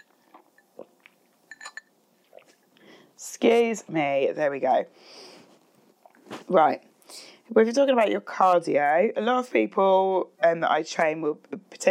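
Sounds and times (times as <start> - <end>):
person sipping a drink: 0.0 - 1.4, 2.2 - 2.8
faint clink: 1.5 - 1.9
speech: 3.2 - 5.2, 6.5 - 11.8.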